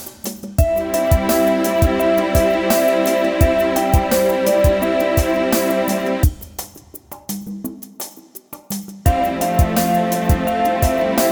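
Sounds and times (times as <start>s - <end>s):
Christmas song: 0.6s - 6.3s, 9.1s - 11.3s.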